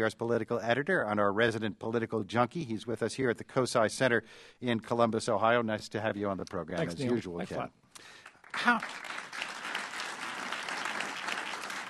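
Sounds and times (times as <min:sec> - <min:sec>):
speech: 0:00.0 - 0:09.3
audience applause: 0:08.2 - 0:11.8.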